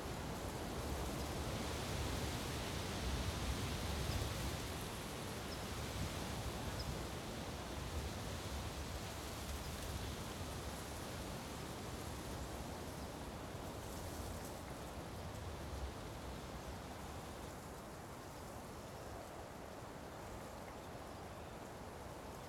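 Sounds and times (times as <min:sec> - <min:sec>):
wind: 0:00.0 - 0:22.4.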